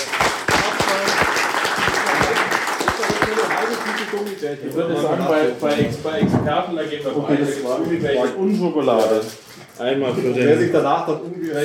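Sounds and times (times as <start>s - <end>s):
applause for a participant during a live video game quiz: 0.0s - 4.8s
speech: 4.4s - 11.6s.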